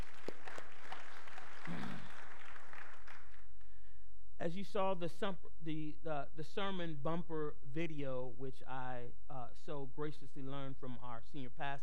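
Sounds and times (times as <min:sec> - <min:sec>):
audience clapping: 0:00.0 - 0:03.6
speech: 0:04.4 - 0:11.8.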